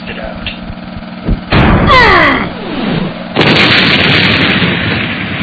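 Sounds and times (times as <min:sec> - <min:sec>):
fuel tanker exploding: 0:01.4 - 0:05.4.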